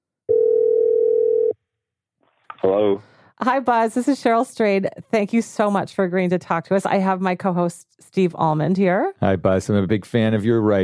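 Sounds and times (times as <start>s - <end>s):
telephone dial tone: 0.3s - 1.5s
speech: 2.6s - 10.8s.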